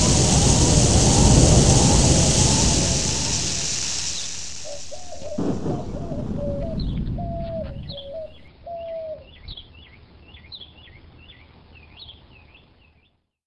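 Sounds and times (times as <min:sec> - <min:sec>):
storm: 0:00.0 - 0:08.5.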